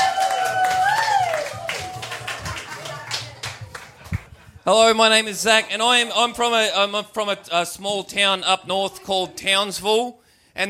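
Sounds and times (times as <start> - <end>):
audience clapping to welcome a comedian onto the stage: 0.0 - 4.6
speech: 4.7 - 10.6.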